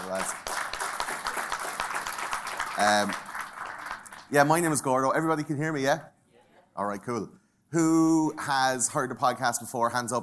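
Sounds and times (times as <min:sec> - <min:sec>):
speech: 0:00.0 - 0:00.5, 0:02.8 - 0:03.3, 0:04.3 - 0:06.1, 0:06.8 - 0:10.2
audience applause: 0:00.0 - 0:04.4.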